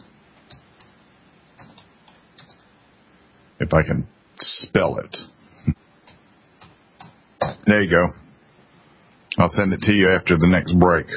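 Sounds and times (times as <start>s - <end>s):
faint keystrokes on a computer keyboard: 1.6s - 2.7s
speech: 3.7s - 5.8s, 7.7s - 8.2s, 9.4s - 11.1s.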